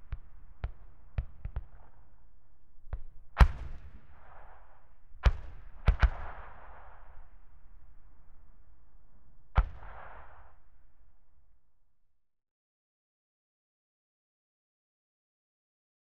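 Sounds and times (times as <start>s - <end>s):
81mm medium mortar firing: 2.9s - 7.3s, 9.6s - 10.6s.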